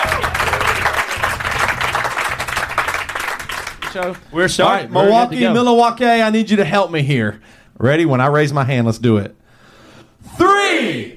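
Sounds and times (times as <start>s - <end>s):
live audience in Milwaukee clapping at a live show: 0.0s - 4.9s
speech: 3.9s - 9.4s.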